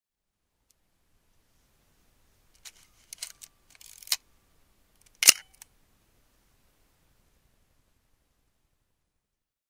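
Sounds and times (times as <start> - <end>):
Pentax MX camera: 2.6 - 4.2, 5.2 - 5.6.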